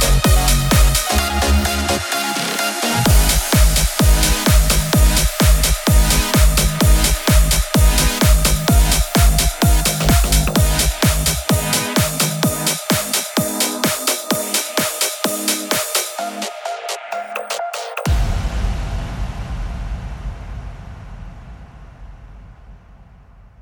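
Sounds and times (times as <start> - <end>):
future house music: 0.0 - 18.2.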